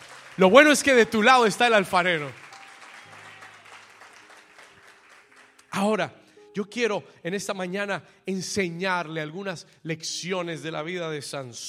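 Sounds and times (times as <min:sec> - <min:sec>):
audience applause: 0:00.0 - 0:05.8
speech: 0:00.4 - 0:02.4, 0:05.8 - 0:11.6.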